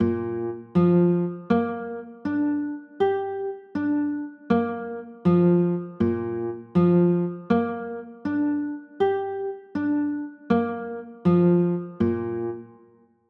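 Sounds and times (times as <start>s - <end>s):
B flat 9 chords: 0.0s - 12.8s.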